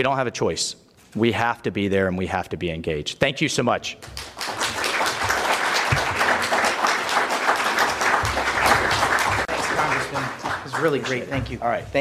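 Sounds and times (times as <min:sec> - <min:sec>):
speech: 0:00.0 - 0:04.4, 0:10.8 - 0:11.9
audience applause: 0:04.1 - 0:11.5.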